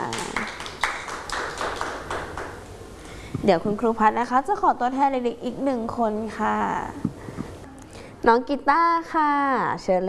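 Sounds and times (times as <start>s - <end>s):
children clapping: 0.0s - 2.6s
speech: 3.4s - 7.1s, 8.2s - 10.0s.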